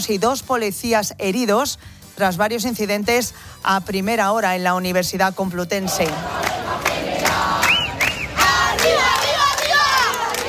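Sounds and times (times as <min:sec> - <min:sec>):
speech: 0:00.0 - 0:06.9
protest crowd shouting and chanting in a square: 0:05.9 - 0:10.4.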